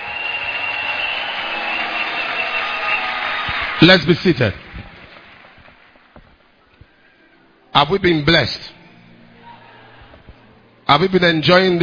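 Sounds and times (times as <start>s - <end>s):
audience clapping: 0.0s - 6.6s
speech: 3.8s - 4.6s, 7.8s - 8.8s, 10.9s - 11.8s.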